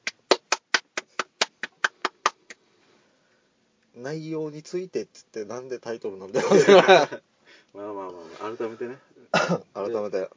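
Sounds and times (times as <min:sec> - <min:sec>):
hand clapping applause: 0:00.0 - 0:02.6
speech: 0:04.0 - 0:10.3
laughter: 0:06.4 - 0:07.2.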